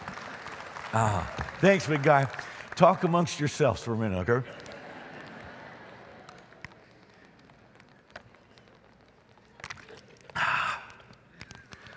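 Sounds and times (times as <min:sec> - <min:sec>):
audience applause: 0:00.0 - 0:06.6
speech: 0:00.9 - 0:04.7.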